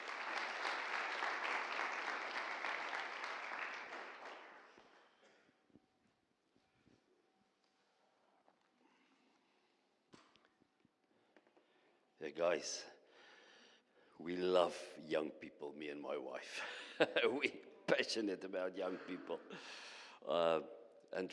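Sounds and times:
audience applause welcoming a pastor at a church gathering: 0.0 - 4.9
speech: 12.2 - 12.9, 14.2 - 21.3.

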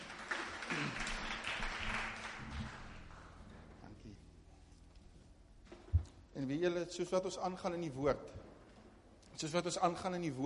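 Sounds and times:
audience applause: 0.0 - 3.7
speech: 6.4 - 8.5, 9.4 - 10.4.

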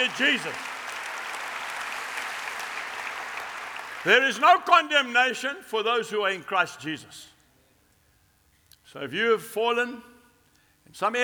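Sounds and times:
speech: 0.0 - 0.7, 4.0 - 7.3, 8.9 - 10.1, 10.9 - 11.2
audience clapping: 0.0 - 4.7.

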